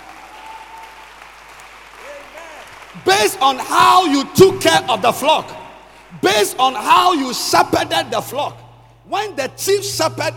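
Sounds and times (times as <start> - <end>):
congregation clapping during a Christian worship sermon: 0.0 - 5.5
speech: 3.0 - 10.3.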